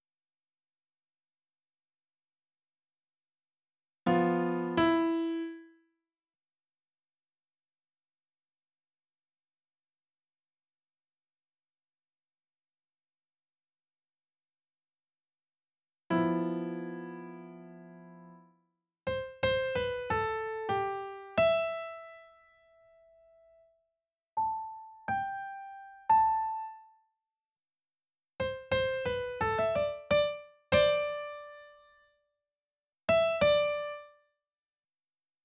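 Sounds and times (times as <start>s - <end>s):
piano: 4.1s - 5.8s, 16.1s - 18.5s, 19.1s - 23.7s, 24.4s - 26.9s, 28.4s - 32.0s, 33.1s - 34.2s.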